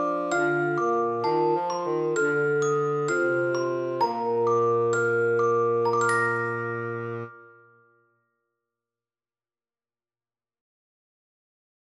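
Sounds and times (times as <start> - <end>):
slow lullaby: 0.0 - 8.2.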